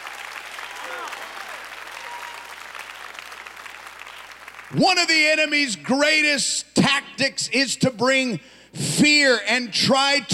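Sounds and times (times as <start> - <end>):
faint cheering voices: 0.0 - 4.1
audience clapping: 0.0 - 4.9
speech: 4.7 - 10.3.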